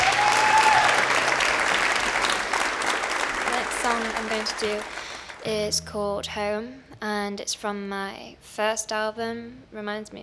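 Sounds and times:
audience applause welcoming a singer to the Red Barn stage: 0.0s - 5.5s
speech: 3.9s - 10.2s.

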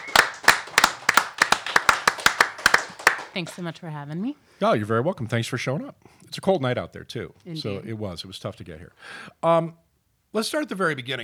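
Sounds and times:
audience applause: 0.0s - 3.7s
speech: 3.4s - 11.2s.

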